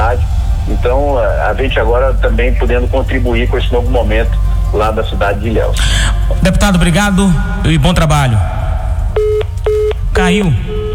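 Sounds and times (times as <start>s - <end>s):
speech: 0.8s - 8.6s, 10.2s - 10.8s
dropped phone call tone beeps: 9.2s - 10.9s.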